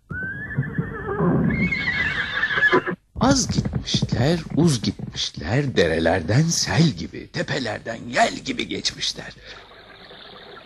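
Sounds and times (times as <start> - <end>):
horse neighing: 0.1 - 3.0
speech: 3.2 - 9.6.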